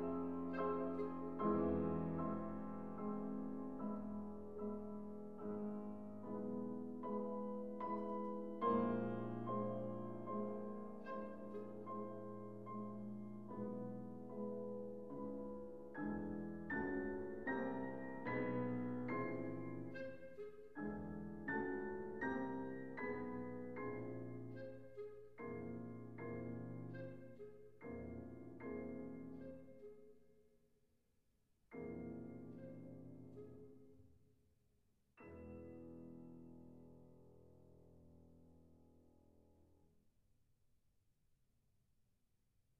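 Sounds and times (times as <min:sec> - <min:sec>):
clarinet: 0:00.0 - 0:30.1.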